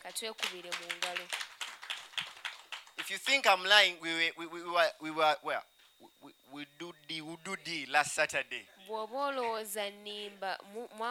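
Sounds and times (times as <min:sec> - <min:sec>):
speech: 0:00.0 - 0:01.6, 0:03.0 - 0:11.0
audience applause: 0:00.4 - 0:03.4.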